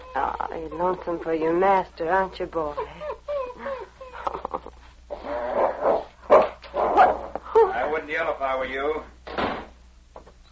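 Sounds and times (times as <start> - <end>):
dog snarling and growling: 0.0 - 1.8, 2.8 - 7.4
speech: 0.2 - 3.0, 8.4 - 9.2
dog barking: 5.6 - 7.3.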